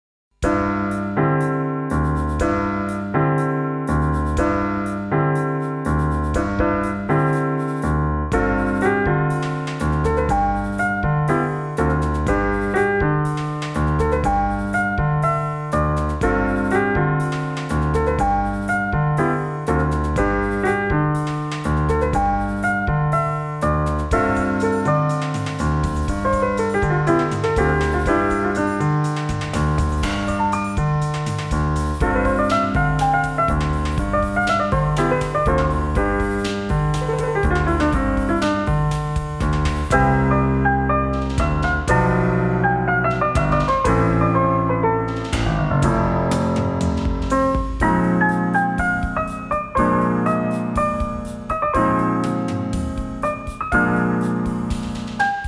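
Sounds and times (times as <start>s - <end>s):
piano music: 0.4s - 55.4s.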